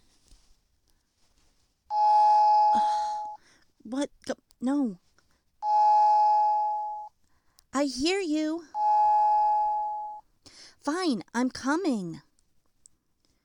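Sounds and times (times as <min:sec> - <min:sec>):
doorbell ringing: 0:01.9 - 0:03.4, 0:05.6 - 0:07.1, 0:08.8 - 0:10.2
speech: 0:03.9 - 0:05.0, 0:07.8 - 0:08.8, 0:10.8 - 0:12.3.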